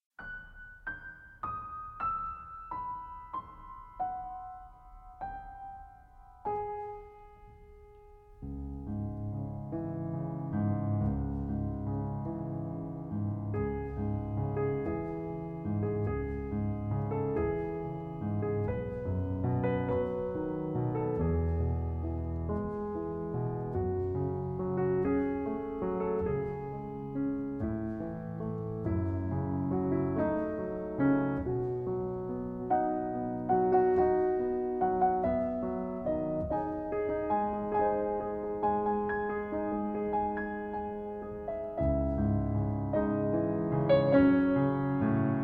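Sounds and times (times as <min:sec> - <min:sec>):
solo piano: 0:00.1 - 0:45.4.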